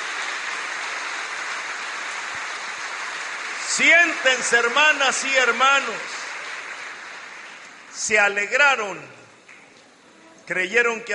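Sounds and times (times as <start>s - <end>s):
audience applause: 0.0s - 8.2s
speech: 3.8s - 6.2s, 8.0s - 9.2s, 10.5s - 11.1s.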